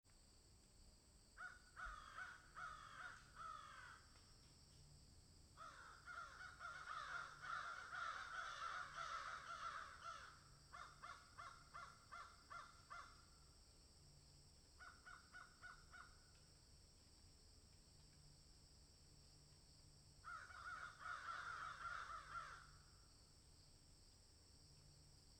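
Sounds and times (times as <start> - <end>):
crow giving hoarse downslurred caws: 1.4 - 4.2, 5.6 - 13.3, 14.8 - 16.3, 20.2 - 22.8.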